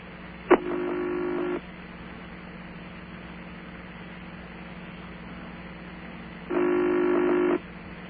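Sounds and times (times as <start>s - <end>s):
quiet telephone line hum: 0.0s - 8.0s
old-fashioned telephone ringback tone: 0.6s - 1.6s, 6.5s - 7.6s.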